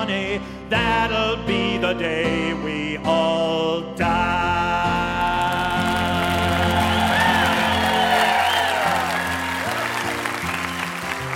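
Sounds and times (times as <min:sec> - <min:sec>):
speech: 0:00.0 - 0:05.0
crowd applauding: 0:05.5 - 0:11.3
crowd cheering and whooping: 0:06.2 - 0:11.3.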